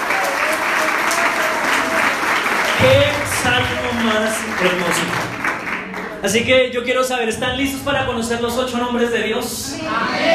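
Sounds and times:
congregation at a church service clapping: 0:00.0 - 0:06.7
speech: 0:04.1 - 0:05.3, 0:06.2 - 0:10.3.

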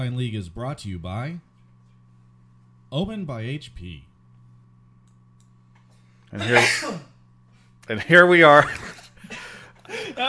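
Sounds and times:
speech: 0:00.0 - 0:01.5, 0:02.9 - 0:04.1, 0:06.3 - 0:07.1, 0:07.9 - 0:10.2
low hum: 0:00.0 - 0:10.2
person sneezing: 0:06.4 - 0:07.1
laughter: 0:08.6 - 0:10.2.

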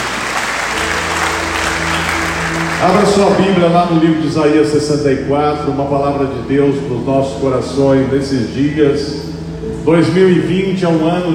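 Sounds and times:
audience applauding: 0:00.0 - 0:04.0
speech: 0:02.8 - 0:09.2, 0:09.8 - 0:11.3.

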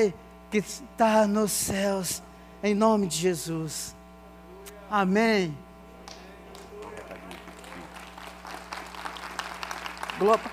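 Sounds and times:
speech: 0:00.0 - 0:04.0, 0:04.9 - 0:05.7, 0:10.2 - 0:10.5
audience clapping: 0:06.0 - 0:10.5.

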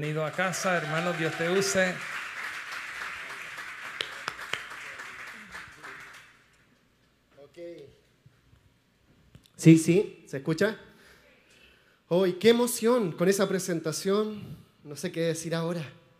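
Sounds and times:
speech: 0:00.0 - 0:02.2, 0:09.6 - 0:10.9, 0:12.1 - 0:16.0
audience applause: 0:00.0 - 0:06.5.

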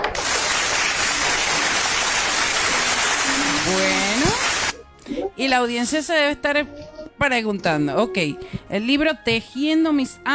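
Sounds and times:
crowd applause: 0:00.0 - 0:04.7
speech: 0:05.4 - 0:10.3.

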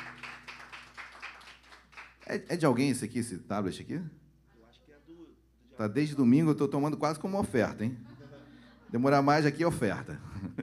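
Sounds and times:
audience clapping in rhythm: 0:00.0 - 0:02.4
speech: 0:02.3 - 0:04.2, 0:05.8 - 0:08.1, 0:08.9 - 0:10.6
laughter: 0:08.0 - 0:09.2.

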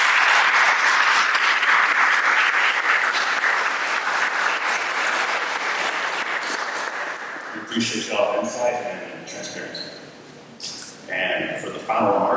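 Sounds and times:
audience applause: 0:00.0 - 0:08.0
speech: 0:07.8 - 0:10.0, 0:11.1 - 0:12.3.

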